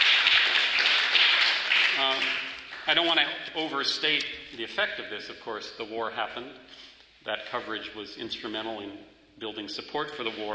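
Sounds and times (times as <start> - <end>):
audience applause at a talk on activism: 0.0 - 3.2
speech: 2.0 - 10.5.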